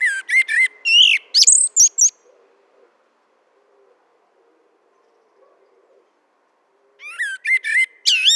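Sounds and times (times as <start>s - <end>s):
Common blackbird Turdus merula singing: 0.0s - 2.2s, 7.0s - 8.3s.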